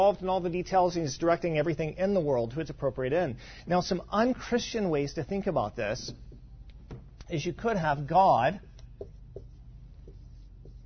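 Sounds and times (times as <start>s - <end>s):
speech: 0.0s - 6.3s, 7.3s - 9.1s
steady hum: 0.0s - 10.8s
writing on a board: 8.6s - 10.8s.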